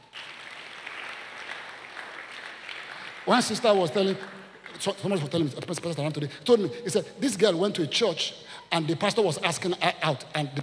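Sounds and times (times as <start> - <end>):
audience clapping: 0.0 - 5.9
speech: 3.2 - 10.6.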